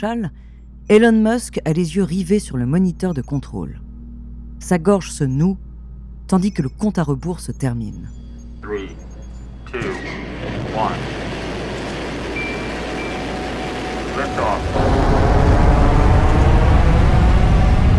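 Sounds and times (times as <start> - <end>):
speech: 0.0 - 3.8, 4.6 - 5.6, 6.3 - 9.0, 9.7 - 10.2, 10.8 - 11.2, 14.2 - 15.0
rocket engine ignition and launch roar: 9.7 - 17.9.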